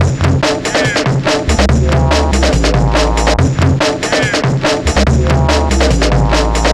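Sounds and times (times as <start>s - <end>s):
hardcore breakbeat in D minor at 142 BPM: 0.0s - 6.7s.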